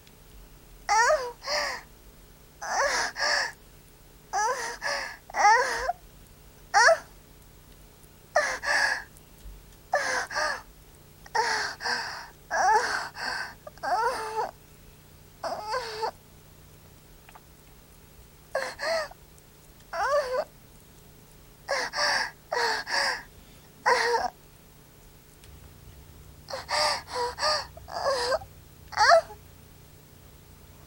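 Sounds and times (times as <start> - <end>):
young woman moaning: 0.9 - 1.8, 2.6 - 3.6, 4.4 - 6.0, 6.8 - 7.1, 8.4 - 9.1, 10.0 - 10.6, 11.3 - 14.5, 15.4 - 16.2, 18.6 - 19.2, 19.9 - 20.5, 21.7 - 24.3, 26.5 - 29.4.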